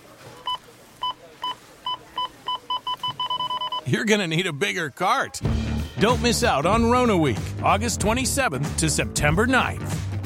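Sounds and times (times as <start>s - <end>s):
checkout scanner beeps: 0.3s - 4.7s
speech: 3.9s - 10.0s.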